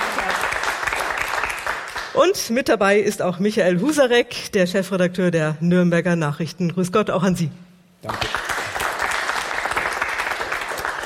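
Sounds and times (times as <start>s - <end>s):
studio audience applause: 0.0s - 2.1s, 8.0s - 11.0s
speech: 2.2s - 8.4s.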